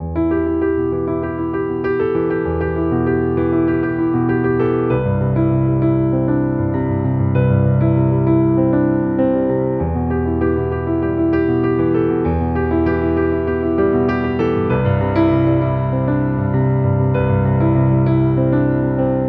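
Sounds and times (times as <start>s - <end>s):
piano: 0.0s - 19.2s.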